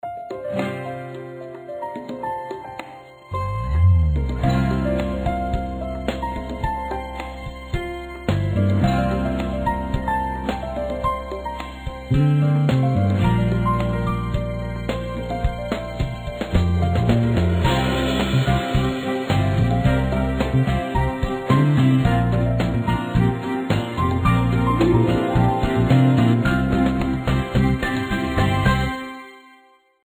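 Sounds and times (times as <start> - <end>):
welcome music: 0.6 - 29.8.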